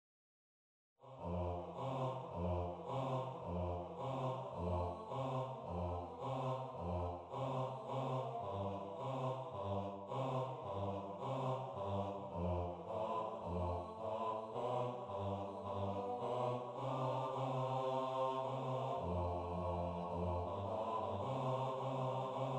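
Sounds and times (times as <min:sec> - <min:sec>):
bass: 0:01.2 - 0:17.9, 0:18.7 - 0:22.4.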